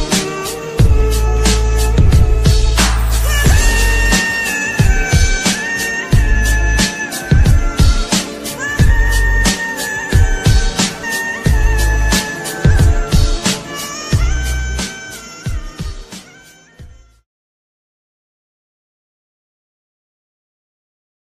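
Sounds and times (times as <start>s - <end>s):
English love song ringtone: 0.1s - 16.9s.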